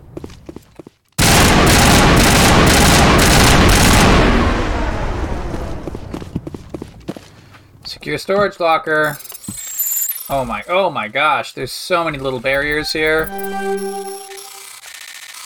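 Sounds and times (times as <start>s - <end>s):
video game automatic gunfire shooting at power junctions: 1.2s - 4.6s
speech: 8.1s - 9.3s, 10.3s - 14.3s.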